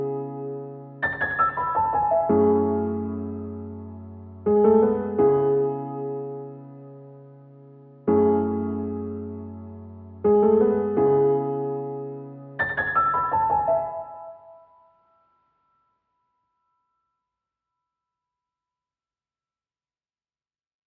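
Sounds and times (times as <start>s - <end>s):
C sharp minor piano loop at 166 BPM: 0.0s - 14.8s.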